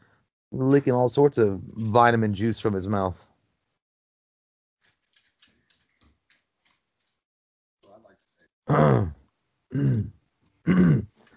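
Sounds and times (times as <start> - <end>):
speech: 0.5 - 3.3, 8.7 - 11.1
person choking and clearing throat: 8.7 - 11.2.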